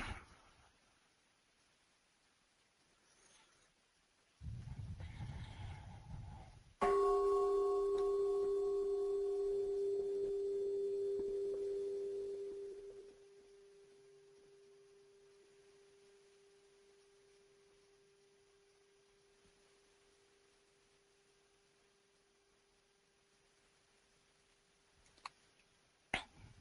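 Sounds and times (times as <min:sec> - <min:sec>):
soft rumbling shuffle: 0:04.4 - 0:06.8
meditation bell ringing: 0:06.8 - 0:14.7.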